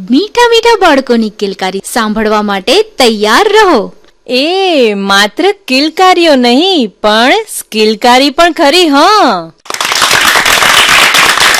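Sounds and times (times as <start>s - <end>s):
speech: 0.0s - 9.6s
audience applause at a children's performance event: 9.7s - 11.5s.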